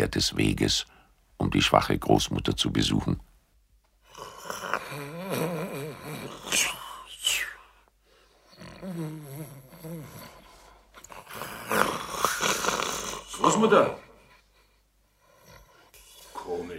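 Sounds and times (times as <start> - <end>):
speech: 0.0 - 3.3, 13.6 - 14.0
person imitating loud snoring: 4.1 - 7.6, 8.5 - 13.7.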